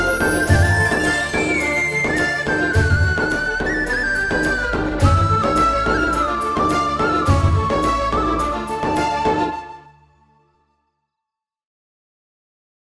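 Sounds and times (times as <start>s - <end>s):
climactic background music: 0.0s - 9.9s.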